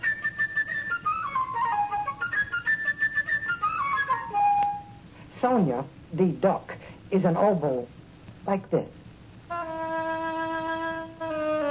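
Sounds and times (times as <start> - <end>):
flute playing quick chirping melody in high register: 0.0 - 5.0, 9.5 - 11.6
speech: 5.4 - 9.0.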